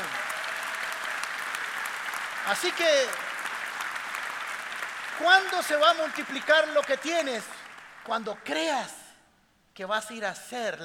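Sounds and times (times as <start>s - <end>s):
audience applause: 0.0s - 8.5s
speech: 2.5s - 3.2s, 5.2s - 9.0s, 9.8s - 10.8s.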